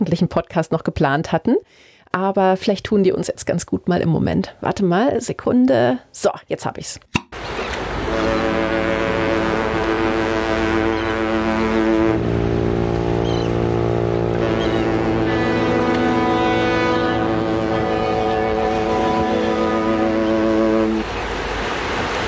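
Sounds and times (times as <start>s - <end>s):
speech: 0.0s - 7.2s
ship horns in Hamburg harbor: 7.4s - 22.2s
Hamburg harbor ambience: 7.8s - 21.6s.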